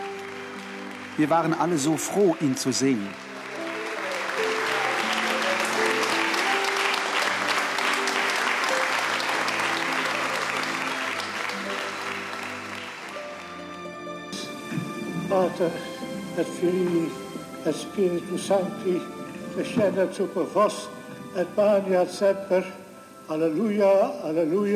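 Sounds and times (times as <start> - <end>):
loud sustained applause from a large crowd: 0.0 - 13.3
faint tonal music: 0.0 - 24.7
speech: 1.2 - 3.3, 15.4 - 24.7.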